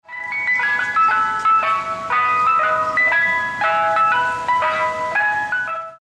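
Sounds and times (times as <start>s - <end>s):
ice cream van alert: 0.1s - 6.0s.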